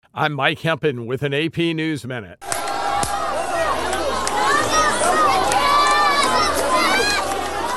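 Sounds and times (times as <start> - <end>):
speech: 0.2 - 2.5
jubilant crowd of Palestinians cheering outside a hospital in the Gaza Strip: 2.4 - 7.7.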